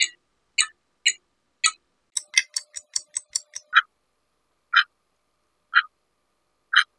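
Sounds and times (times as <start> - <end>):
clocks: 0.0 - 3.8.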